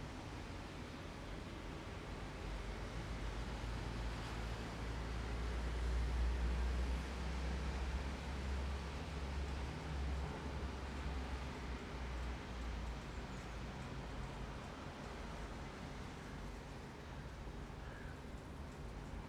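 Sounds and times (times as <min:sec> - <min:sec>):
evening rain in an urban city: 0:00.0 - 0:19.2.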